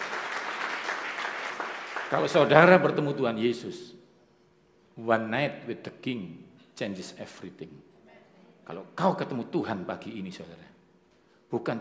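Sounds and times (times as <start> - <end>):
audience applause: 0.0 - 2.5
speech: 2.1 - 4.0, 5.0 - 7.9, 8.7 - 10.7, 11.5 - 11.7.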